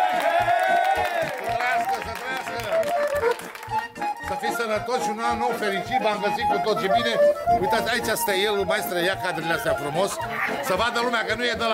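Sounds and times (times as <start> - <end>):
lively crowd applauding and cheering for a musician: 0.0 - 4.5
loud festive music with steady thumping beat and bright melodic line: 0.0 - 11.7
speech: 4.7 - 11.7
laughter: 9.8 - 11.5.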